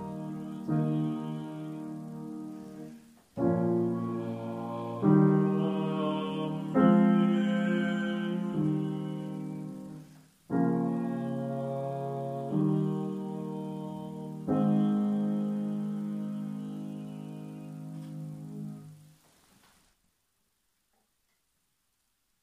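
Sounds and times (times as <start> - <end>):
bass voices singing: 0.0 - 10.0, 10.6 - 18.3.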